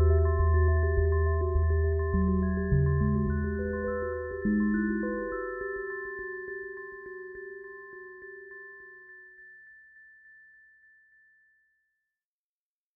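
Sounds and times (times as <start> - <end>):
sub bass: 0.0 - 5.3
music box: 0.0 - 11.9.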